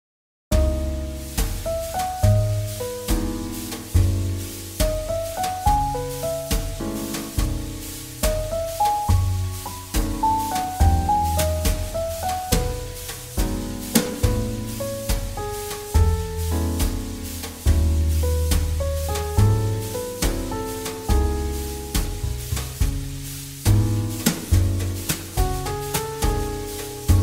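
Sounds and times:
jazz ballad: 0.5s - 27.2s.

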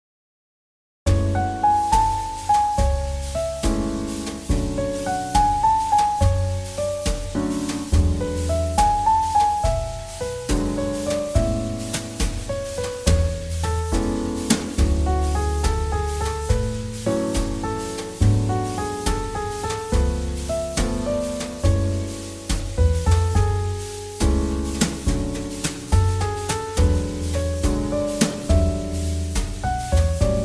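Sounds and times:
jazz ballad: 1.1s - 30.4s.

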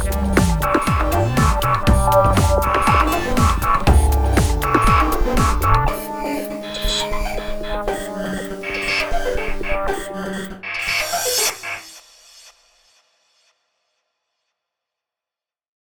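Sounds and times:
EDM music: 0.0s - 11.6s.

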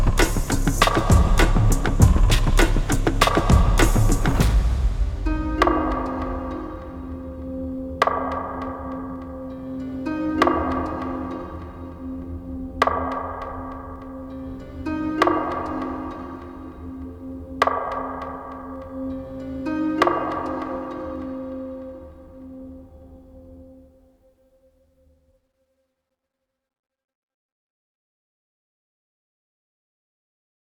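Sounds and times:
mysterious rhythm music: 0.0s - 23.8s.

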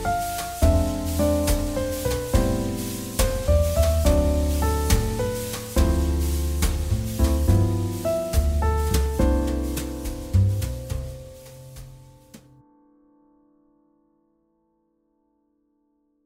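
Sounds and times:
jazz ballad: 0.0s - 12.6s.

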